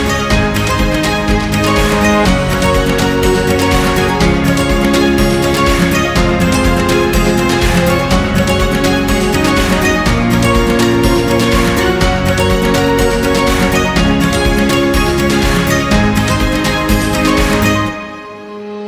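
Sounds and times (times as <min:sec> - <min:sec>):
upbeat acoustic guitar background music: 0:00.0 - 0:18.6.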